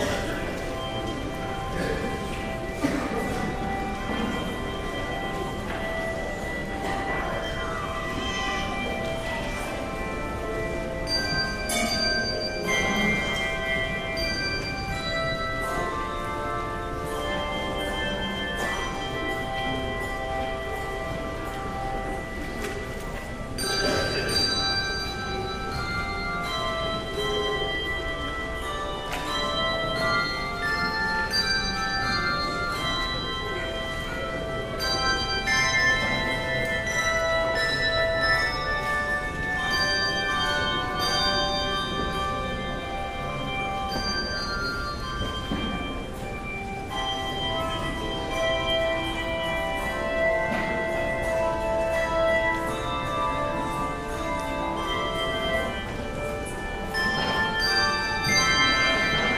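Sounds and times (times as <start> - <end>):
handbells: 0.0 - 59.3.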